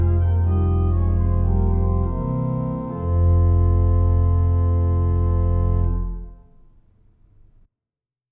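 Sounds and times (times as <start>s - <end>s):
organ: 0.0s - 6.5s.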